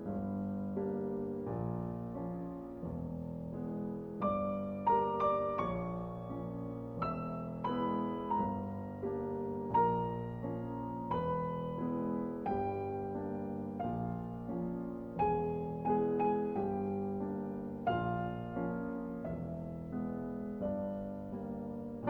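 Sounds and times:
sad piano: 0.0 - 22.0.

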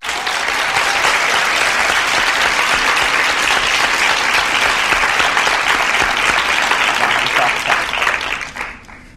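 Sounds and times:
applause: 0.0 - 9.1
laughter: 2.4 - 8.6.

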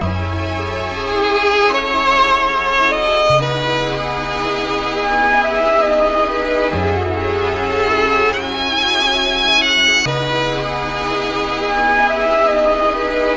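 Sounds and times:
sad string music: 0.0 - 13.3.

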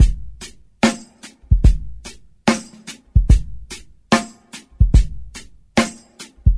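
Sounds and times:
boom bap drum loops: 0.0 - 6.5.

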